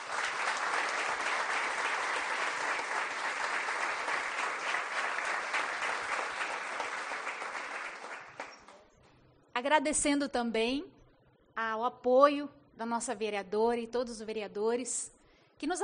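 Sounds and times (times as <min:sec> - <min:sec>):
audience clapping: 0:00.0 - 0:08.9
speech: 0:09.6 - 0:11.0, 0:11.8 - 0:15.8.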